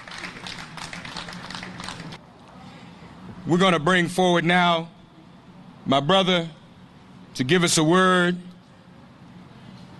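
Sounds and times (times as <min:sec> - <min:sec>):
audience applause: 0:00.0 - 0:02.2
speech: 0:03.5 - 0:05.0, 0:05.9 - 0:06.6, 0:07.4 - 0:08.5.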